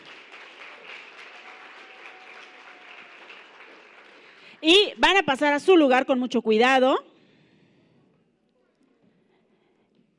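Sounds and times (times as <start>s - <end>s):
audience applause: 0.0s - 4.6s
speech: 4.6s - 7.1s.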